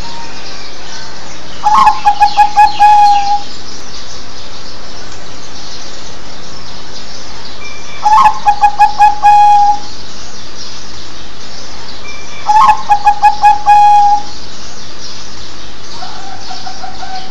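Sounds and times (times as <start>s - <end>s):
zebra dove cooing: 1.6s - 3.5s, 8.0s - 9.9s, 12.5s - 14.3s, 16.0s - 17.2s.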